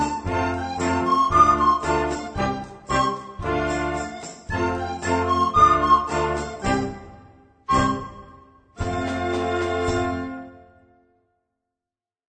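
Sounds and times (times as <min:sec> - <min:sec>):
recorder playing: 0:00.0 - 0:10.8.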